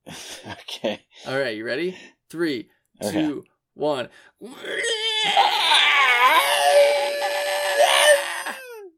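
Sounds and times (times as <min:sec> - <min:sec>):
speech: 0:00.4 - 0:05.6
two voices imitating Godzilla and Anguirus monster roars: 0:04.5 - 0:08.6.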